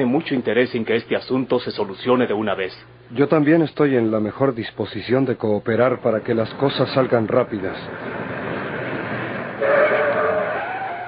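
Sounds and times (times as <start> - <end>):
speech: 0.0 - 8.2
car engine and tyre rumble pulling up outside: 6.8 - 11.0
high car brake squeal: 8.0 - 11.0.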